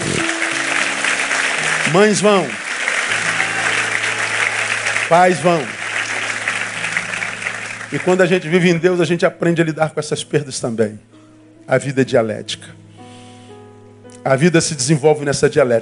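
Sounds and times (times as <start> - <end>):
audience applauding: 0.0 - 8.8
speech: 1.9 - 2.6, 5.1 - 5.8, 7.9 - 12.8, 14.2 - 15.7.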